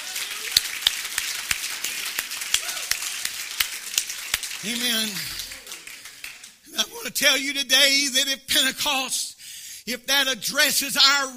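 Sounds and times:
audience clapping hands: 0.0s - 6.7s
speech: 4.6s - 5.4s, 7.0s - 11.3s.

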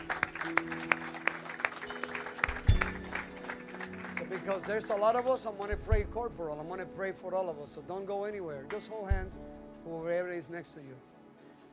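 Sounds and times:
audience clapping: 0.0s - 5.9s
speech: 4.5s - 11.1s.

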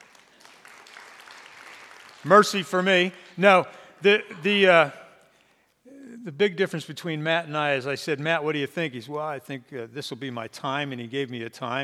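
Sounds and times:
audience applause: 0.0s - 2.8s
speech: 2.2s - 5.0s, 6.2s - 11.8s.

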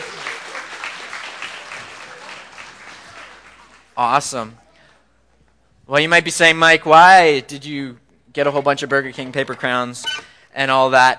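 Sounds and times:
audience applause: 0.0s - 4.0s
speech: 4.0s - 4.6s, 5.9s - 11.1s.

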